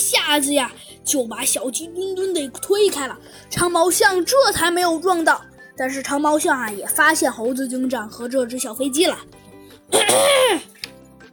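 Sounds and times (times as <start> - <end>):
speech: 0.0 - 10.7
person imitating a cough: 9.9 - 10.8.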